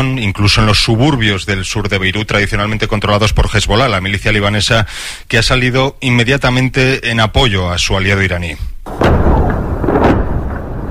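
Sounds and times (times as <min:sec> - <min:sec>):
speech: 0:00.0 - 0:09.1
bombs exploding in the southern suburbs of Beirut: 0:08.8 - 0:10.8
low rumble: 0:08.9 - 0:10.8.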